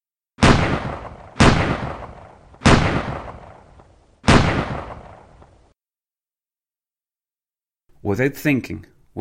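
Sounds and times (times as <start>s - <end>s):
Colt 1911 pistol gunshots: 0.4s - 5.6s
speech: 8.0s - 9.0s.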